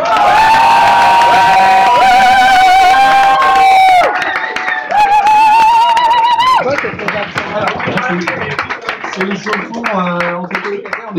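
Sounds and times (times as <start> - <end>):
audience applause and cheering: 0.0 - 11.0.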